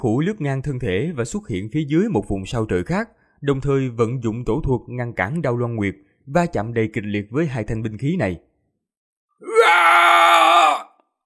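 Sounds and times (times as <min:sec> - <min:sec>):
speech: 0:00.0 - 0:08.5
man's long battle scream: 0:09.4 - 0:11.0.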